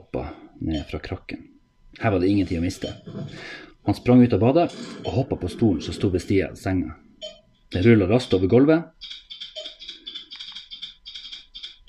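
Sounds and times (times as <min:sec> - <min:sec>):
speech: 0:00.1 - 0:09.2
typing on a computer keyboard: 0:09.0 - 0:11.8.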